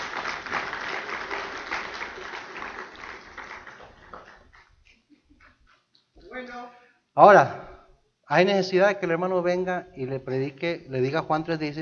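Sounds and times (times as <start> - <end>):
crowd clapping: 0.0 - 6.0
speech: 6.4 - 7.6, 8.3 - 11.7.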